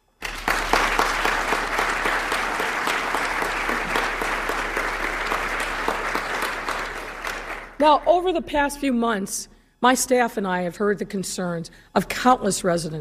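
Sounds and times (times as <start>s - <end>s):
audience applause: 0.2s - 7.8s
speech: 7.8s - 13.0s.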